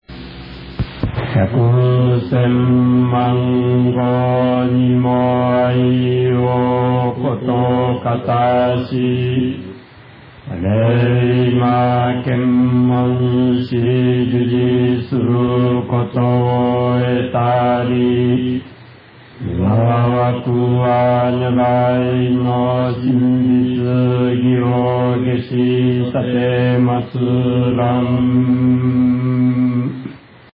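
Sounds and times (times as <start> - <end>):
chanting: 1.1 - 9.8, 10.4 - 30.2.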